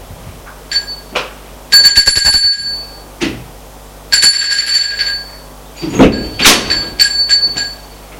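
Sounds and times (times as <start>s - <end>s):
doorbell ringing: 0.7s - 1.1s, 1.7s - 3.1s, 4.1s - 8.0s.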